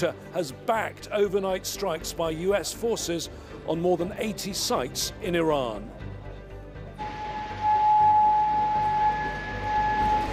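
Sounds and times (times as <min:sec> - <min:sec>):
speech: 0:00.0 - 0:06.0
air raid siren wailing: 0:07.0 - 0:10.3.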